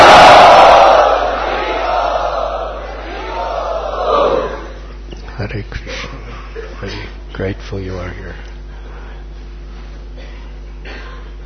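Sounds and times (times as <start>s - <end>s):
crowd at an ISKCON Chowpatty gathering loudly chanting: 0.0s - 4.8s.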